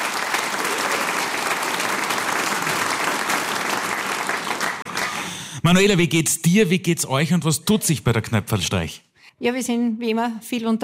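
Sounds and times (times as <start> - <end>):
audience applause: 0.0 - 6.0
speech: 5.7 - 10.8.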